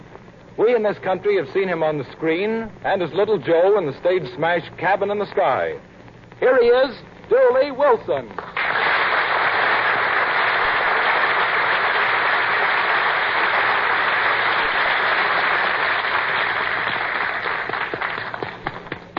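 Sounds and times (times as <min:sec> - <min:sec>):
speech: 0:00.6 - 0:08.6
audience applause: 0:08.4 - 0:19.1.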